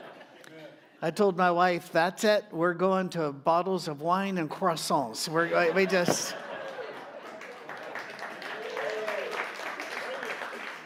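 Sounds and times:
laughter: 0.0 - 0.9, 5.3 - 8.3
speech: 1.0 - 6.4
audience applause: 6.5 - 10.8.

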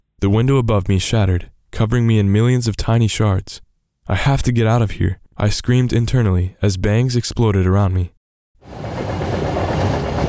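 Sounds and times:
speech: 0.2 - 8.8
train's iron wheels rumbling on rails: 8.6 - 10.2.

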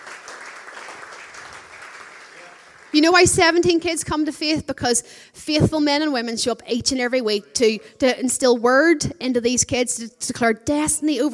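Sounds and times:
audience applause: 0.0 - 3.1
speech: 2.9 - 11.3.

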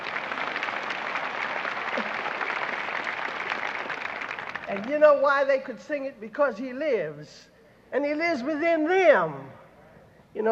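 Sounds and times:
audience applause for children who have just sung: 0.0 - 5.0
speech: 4.7 - 9.6, 10.3 - 10.5.

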